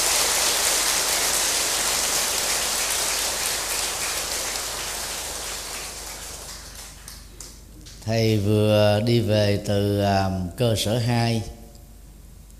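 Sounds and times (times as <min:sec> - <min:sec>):
large crowd applause: 0:00.0 - 0:07.6
speech: 0:08.1 - 0:11.6.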